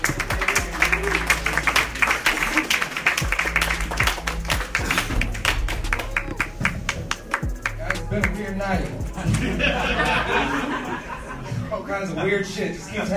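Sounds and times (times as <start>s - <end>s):
crowd clapping for a comedian: 0.0s - 8.4s
speech: 8.5s - 10.7s, 11.9s - 13.1s
laughter: 9.1s - 13.1s.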